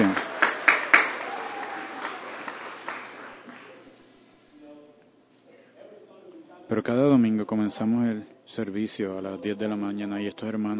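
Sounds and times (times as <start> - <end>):
audience applause: 0.0 - 3.9
speech: 6.7 - 10.7.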